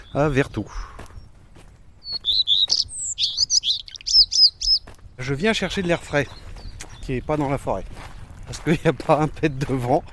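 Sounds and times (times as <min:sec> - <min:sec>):
bird singing in forest: 0:00.0 - 0:01.4, 0:02.0 - 0:07.7
speech: 0:00.1 - 0:01.1, 0:05.2 - 0:06.5, 0:07.1 - 0:10.1.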